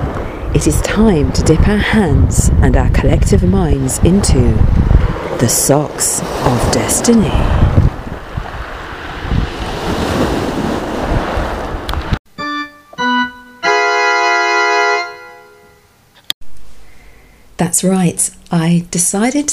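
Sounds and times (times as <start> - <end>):
crashing waves by the sea: 0.0 - 2.0, 3.2 - 12.2
wind by the sea: 0.0 - 12.2, 15.8 - 19.5
speech: 0.6 - 7.9, 17.6 - 19.5
bright sustained musical tones: 12.3 - 16.0.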